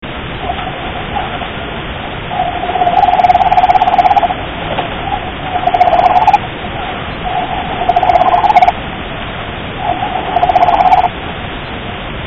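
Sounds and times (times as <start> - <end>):
Stimpson's ghost crab producing grating pulse series: 0.4 - 8.8, 9.8 - 11.1.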